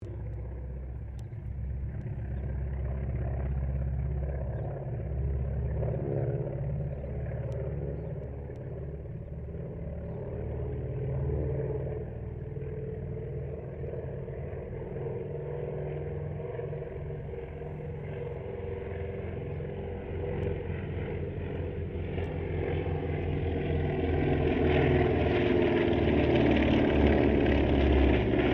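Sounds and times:
distant CAC Wackett Winjeel and Wirraway aircraft passing: 0.0s - 28.5s.

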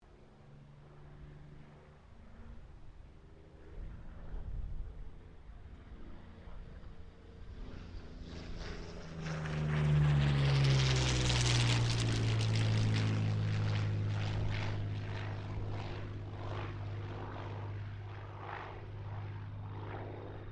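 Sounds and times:
P-40 Kittyhawk aircraft passing: 0.1s - 20.4s.

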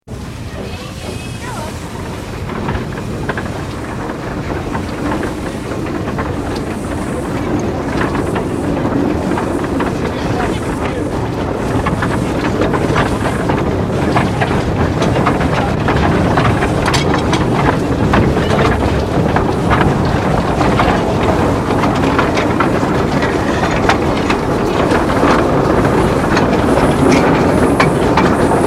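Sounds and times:
narrow gauge steam train running, heard on board: 0.1s - 28.6s.

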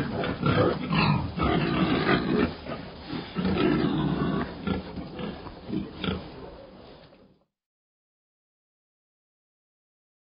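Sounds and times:
pig: 0.0s - 7.4s.

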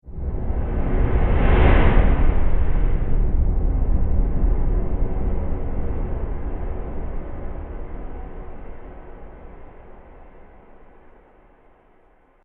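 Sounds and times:
flashback transition whoosh: 0.1s - 8.8s.

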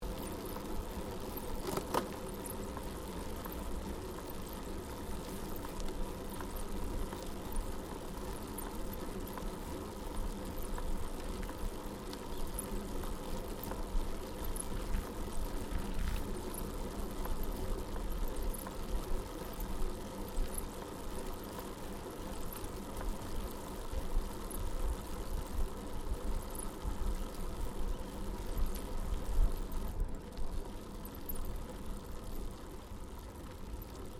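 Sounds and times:
21 speed road bicycle pedalling slowly uphill on smooth bitumen: 0.0s - 34.1s.

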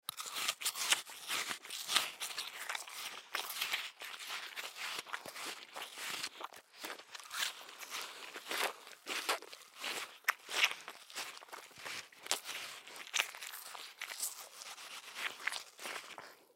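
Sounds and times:
person biting food: 0.1s - 16.4s.

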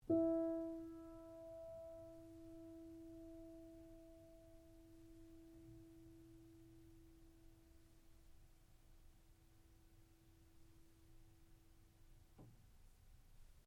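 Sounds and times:
out-of-tune baby grand piano E3 note: 0.0s - 7.4s.

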